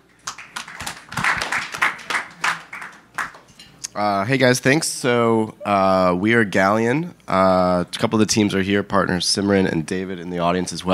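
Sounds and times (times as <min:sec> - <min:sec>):
audience applause welcoming a speaker at a live business talk event: 0:00.2 - 0:03.4
speech: 0:04.0 - 0:10.9.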